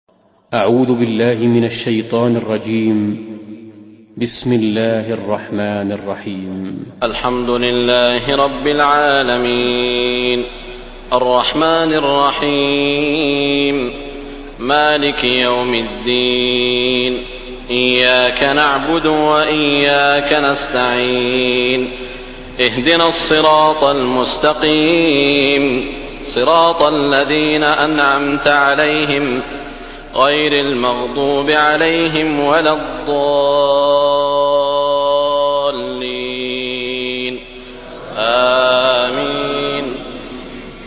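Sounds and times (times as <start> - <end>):
person reciting a Quran verse: 0.5 - 3.6, 4.2 - 40.8.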